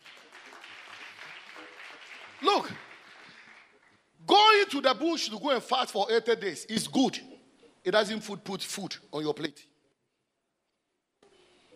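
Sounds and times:
hand clapping: 0:00.0 - 0:04.0
speech: 0:02.4 - 0:02.8, 0:04.7 - 0:09.7.

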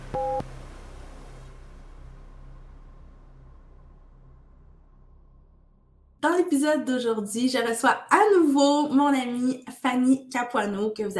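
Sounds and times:
short two-tone electronic beep: 0:00.0 - 0:00.4
low steady hum: 0:00.0 - 0:05.9
speech: 0:06.2 - 0:11.1.

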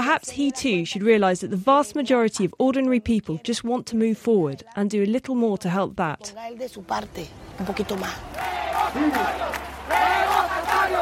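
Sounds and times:
speech: 0:00.1 - 0:10.2
protest crowd chanting loudly in unison: 0:07.5 - 0:11.0.

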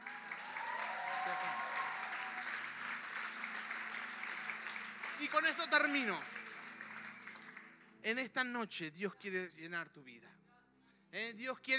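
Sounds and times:
audience applause: 0:00.0 - 0:08.1
speech: 0:05.2 - 0:06.4, 0:08.0 - 0:10.4, 0:11.1 - 0:11.7.

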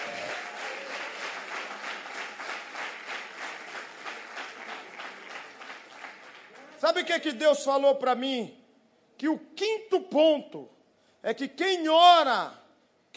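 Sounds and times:
applause: 0:00.0 - 0:07.1
speech: 0:06.8 - 0:08.6, 0:09.2 - 0:13.1.

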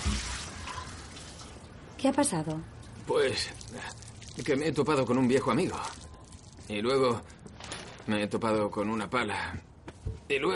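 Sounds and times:
water tap being turned off: 0:00.0 - 0:01.6
speech: 0:02.0 - 0:06.0, 0:06.7 - 0:07.4, 0:08.0 - 0:09.7, 0:10.3 - 0:10.5.

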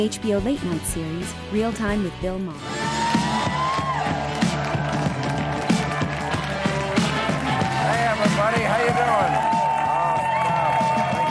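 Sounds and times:
speech: 0:00.0 - 0:02.8
studio audience cheering and applauding: 0:02.6 - 0:11.3.

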